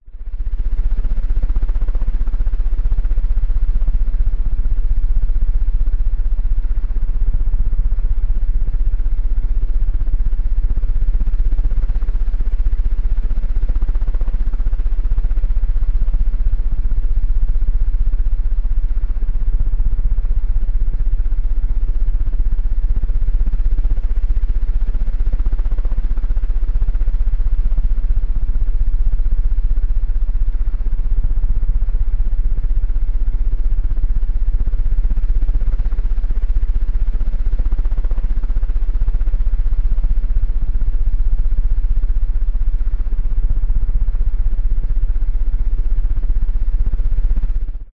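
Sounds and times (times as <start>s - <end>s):
household ceiling fan spinning fast: 0.0s - 47.9s.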